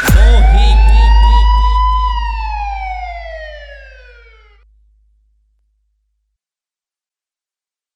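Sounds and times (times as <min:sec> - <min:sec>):
police siren: 0:00.1 - 0:04.6.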